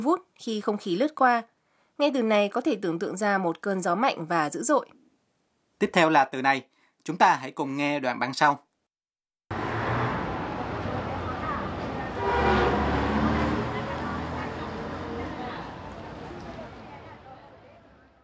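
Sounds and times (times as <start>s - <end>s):
speech: 0.0s - 5.0s, 5.8s - 8.6s
traffic and engine rumble: 9.5s - 18.2s
indistinct voices: 10.4s - 18.0s
car horn honking: 12.0s - 15.3s.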